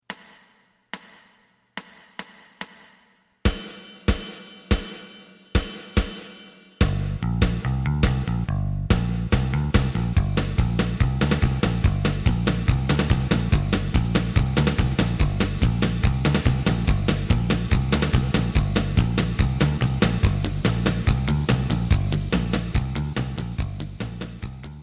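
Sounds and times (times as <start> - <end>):
lead melody: 6.9 - 24.5.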